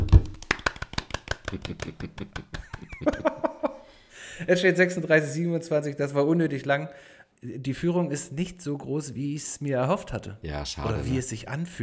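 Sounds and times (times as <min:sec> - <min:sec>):
hands clapping: 0:00.0 - 0:03.5
laughter: 0:01.4 - 0:03.8
speech: 0:01.5 - 0:03.6, 0:04.4 - 0:11.8.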